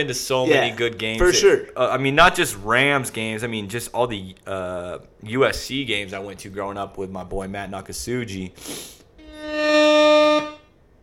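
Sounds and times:
speech: 0.0s - 10.0s
rap air horn sound effect from soundboard: 9.2s - 10.8s.

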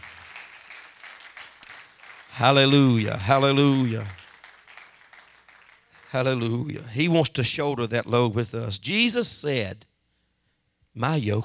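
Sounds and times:
hand clapping: 0.0s - 6.9s
speech: 2.4s - 4.2s, 6.1s - 9.9s, 11.0s - 11.4s.

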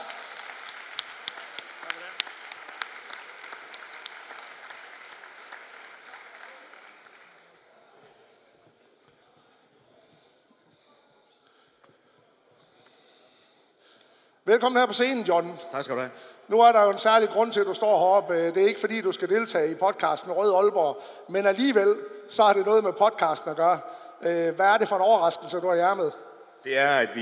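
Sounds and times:
applause welcoming a guest onto the stage at a live event in Aalborg: 0.0s - 7.7s
speech: 14.5s - 27.1s.

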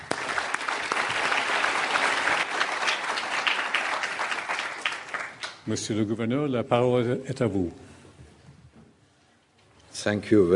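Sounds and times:
lecture audience at the LSE applauding a guest speaker: 0.0s - 5.6s
speech: 5.7s - 7.8s, 10.0s - 10.5s.

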